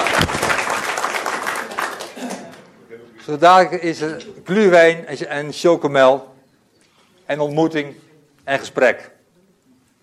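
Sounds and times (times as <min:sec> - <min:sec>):
audience clapping at the close of a gathering: 0:00.0 - 0:02.7
speech: 0:03.3 - 0:06.3, 0:07.3 - 0:09.1.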